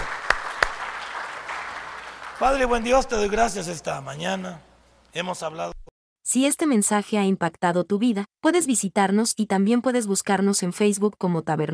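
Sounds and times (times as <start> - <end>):
audience applause: 0.0 - 3.7
speech: 2.4 - 11.7.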